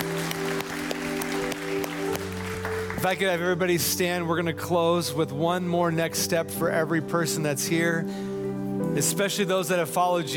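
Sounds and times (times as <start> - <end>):
church congregation clapping after a service prayer: 0.0 - 3.6
speech: 3.0 - 8.3, 9.0 - 10.3.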